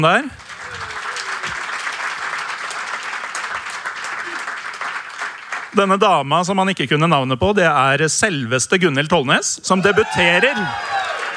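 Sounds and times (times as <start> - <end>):
speech: 0.0 - 0.4, 5.7 - 11.1
audience applause: 0.0 - 5.8, 9.8 - 11.3.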